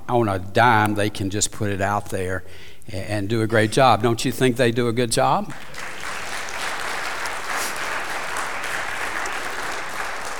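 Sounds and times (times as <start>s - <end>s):
speech: 0.1s - 6.0s
audience applauding worship team: 5.5s - 10.3s.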